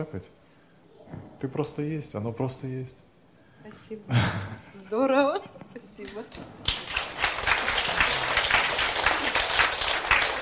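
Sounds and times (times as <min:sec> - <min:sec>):
speech: 0:00.0 - 0:00.4, 0:01.1 - 0:06.8
group applause: 0:06.5 - 0:10.4.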